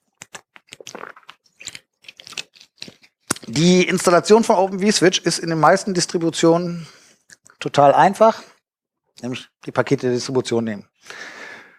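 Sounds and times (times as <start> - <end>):
person taking a sip of a drink: 0.3 - 3.5
swallowing: 0.6 - 3.5
speech: 3.5 - 7.0, 7.6 - 8.5, 9.2 - 11.4.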